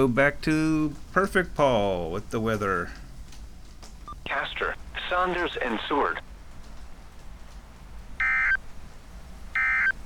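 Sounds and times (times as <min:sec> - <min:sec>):
speech: 0:00.0 - 0:03.0, 0:04.2 - 0:06.3
weather alert electronic warning tones: 0:08.2 - 0:08.6, 0:09.6 - 0:10.0.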